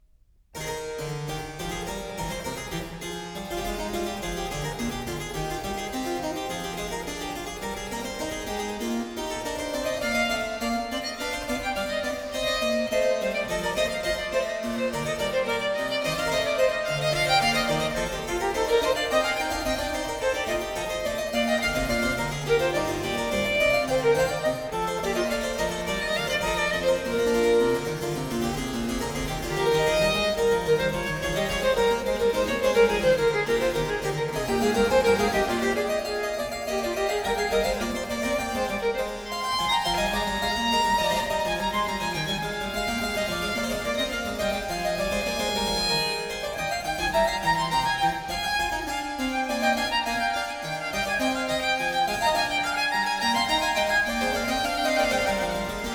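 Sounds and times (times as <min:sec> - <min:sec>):
harpsichord in a sonata allegro: 0:00.6 - 0:55.9
violin in a sonata allegro: 0:00.6 - 0:55.9.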